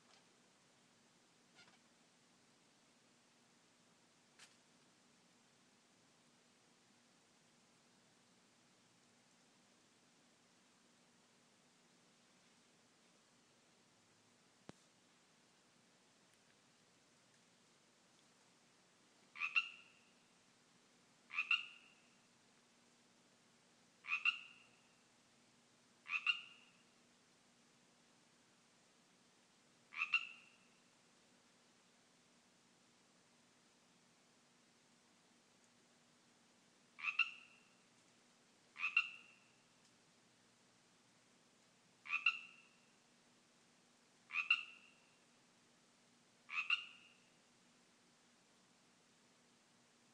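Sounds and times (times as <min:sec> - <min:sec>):
Pacific tree frogs calling in a yard: 0:19.3 - 0:20.2, 0:21.3 - 0:22.2, 0:24.0 - 0:25.0, 0:26.0 - 0:26.9, 0:29.9 - 0:30.9, 0:37.0 - 0:37.8, 0:38.7 - 0:39.7, 0:42.0 - 0:43.0, 0:44.3 - 0:45.2, 0:46.5 - 0:47.4.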